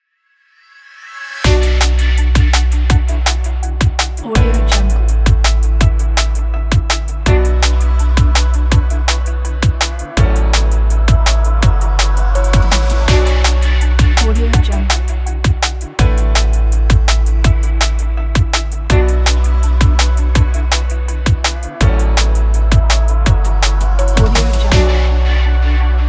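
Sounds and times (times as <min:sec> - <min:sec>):
relaxing drum and bass music: 0:01.4 - 0:25.9.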